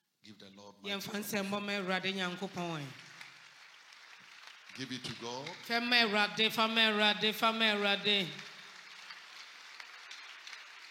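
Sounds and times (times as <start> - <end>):
speech: 0.4 - 3.0, 4.8 - 8.5
weak clapping from audience: 2.7 - 10.8.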